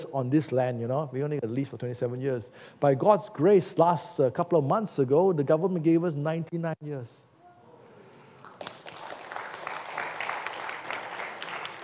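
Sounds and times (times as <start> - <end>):
speech: 0.1 - 7.3
audience clapping: 8.4 - 11.8.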